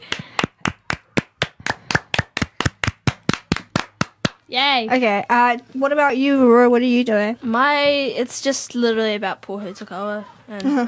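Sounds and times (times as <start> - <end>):
audience applause: 0.0 - 4.4
speech: 4.5 - 10.8.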